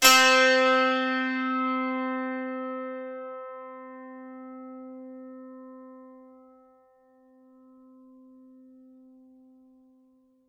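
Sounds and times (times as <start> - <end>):
dulcimer pluck on C4: 0.0 - 4.0.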